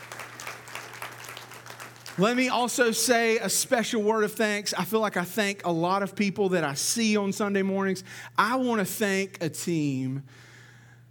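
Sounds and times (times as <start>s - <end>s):
audience clapping: 0.0s - 3.0s
speech: 2.2s - 10.5s.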